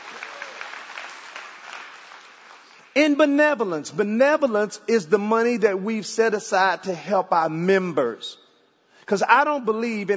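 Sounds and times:
crowd applauding: 0.0s - 3.0s
speech: 3.0s - 8.4s, 9.1s - 10.1s.

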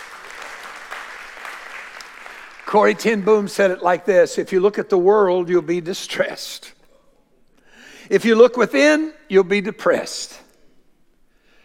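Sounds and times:
audience clapping: 0.0s - 3.8s
speech: 2.7s - 6.8s, 8.1s - 10.4s.

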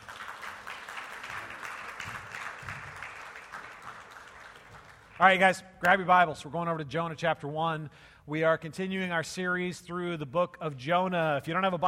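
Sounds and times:
crowd applauding: 0.0s - 5.3s
speech: 5.2s - 11.8s.

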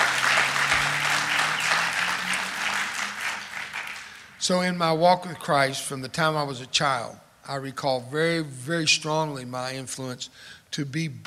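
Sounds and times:
audience clapping hands: 0.0s - 4.4s
speech: 4.4s - 11.2s.

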